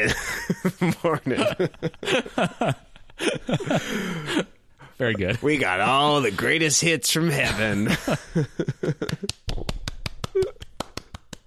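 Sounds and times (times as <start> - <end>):
laughter: 0.0 - 6.0, 7.4 - 9.4
speech: 0.0 - 8.6
applause: 9.0 - 11.4.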